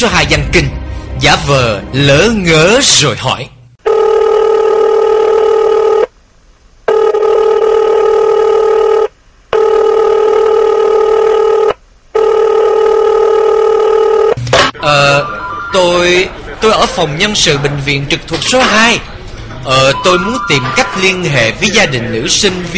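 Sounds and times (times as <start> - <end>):
speech: 0.0 - 3.5, 14.8 - 22.7
telephone ringing on a call to a university student affairs office: 3.8 - 6.1, 6.9 - 16.4, 19.8 - 21.4
telephone tones: 3.8 - 6.1, 6.9 - 14.4.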